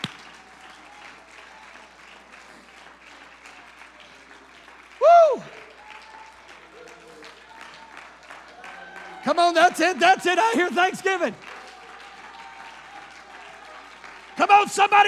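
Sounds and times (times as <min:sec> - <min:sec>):
audience clapping hands: 0:00.0 - 0:15.0
speech: 0:09.2 - 0:11.4, 0:14.6 - 0:15.0.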